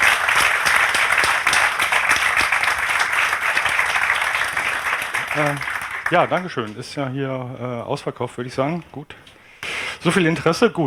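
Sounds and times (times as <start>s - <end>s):
audience applause: 0.0s - 6.8s
speech: 5.4s - 9.3s, 10.0s - 10.8s.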